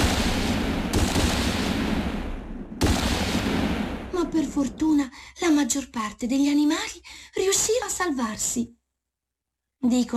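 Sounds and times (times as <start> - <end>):
gunfire: 0.0 - 4.5
speech: 4.4 - 8.8, 9.8 - 10.1.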